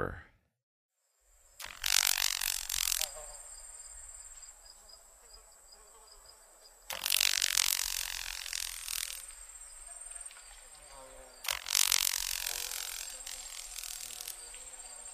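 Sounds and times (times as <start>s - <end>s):
Carolina grasshopper wing-snapping crepitation: 1.6s - 4.7s, 6.9s - 15.1s.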